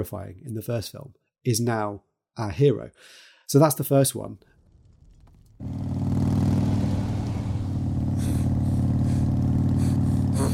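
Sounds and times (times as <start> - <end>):
speech: 0.0 - 4.5
motorcycle engine revving: 4.8 - 10.5.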